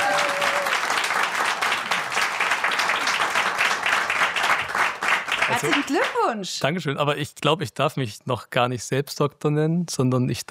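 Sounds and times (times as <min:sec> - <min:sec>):
live audience applause: 0:00.0 - 0:06.3
speech: 0:05.6 - 0:10.4.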